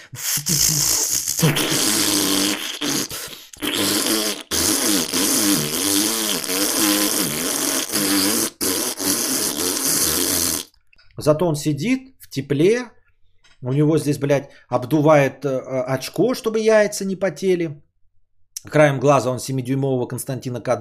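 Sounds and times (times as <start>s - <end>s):
voice imitating a turbocharged car's exhaust: 0.0s - 10.7s
speech: 0.1s - 1.8s, 11.2s - 13.0s, 13.6s - 17.9s, 18.6s - 20.7s.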